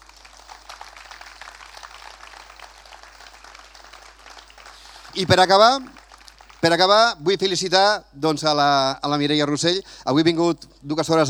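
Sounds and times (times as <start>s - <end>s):
audience applause: 0.0s - 7.1s
speech: 5.2s - 6.0s, 6.6s - 11.2s.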